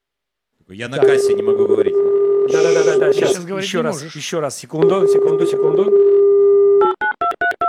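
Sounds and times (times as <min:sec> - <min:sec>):
speech: 0:00.7 - 0:06.3
phone touch-tone beeps while dialing: 0:01.0 - 0:03.4, 0:04.8 - 0:07.6.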